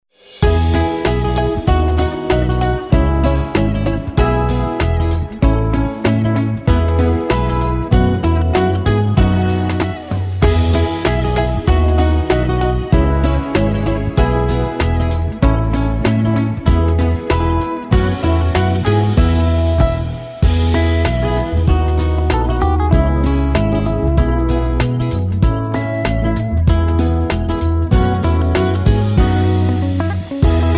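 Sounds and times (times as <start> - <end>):
mandolin playing a Christmas song: 0.4 - 30.7.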